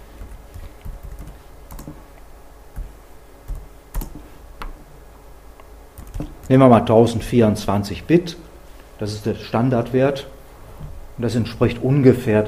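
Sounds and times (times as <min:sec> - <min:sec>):
typing on a computer keyboard: 0:00.2 - 0:02.0, 0:03.5 - 0:04.2, 0:06.0 - 0:06.5
speech: 0:06.5 - 0:08.4, 0:09.0 - 0:10.3, 0:11.2 - 0:12.4.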